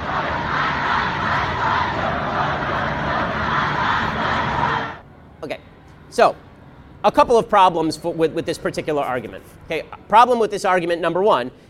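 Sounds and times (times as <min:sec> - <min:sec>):
rally crowd chanting and shouting slogans: 0:00.0 - 0:05.0
speech: 0:06.2 - 0:06.4, 0:07.0 - 0:11.6.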